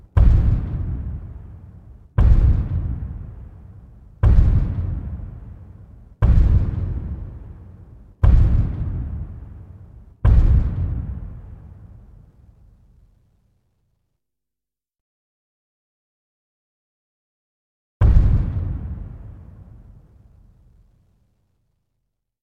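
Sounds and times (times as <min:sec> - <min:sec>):
dinosaur footstep: 0:00.2 - 0:01.4, 0:02.2 - 0:03.6, 0:04.2 - 0:05.6, 0:06.2 - 0:07.5, 0:08.2 - 0:09.5, 0:10.2 - 0:11.6.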